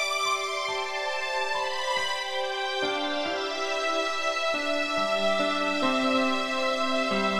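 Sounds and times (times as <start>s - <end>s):
flying music: 0.2s - 7.3s.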